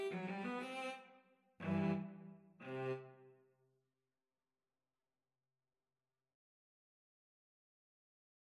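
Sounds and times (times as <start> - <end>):
cello duet: 0.0 - 1.0, 1.6 - 3.2.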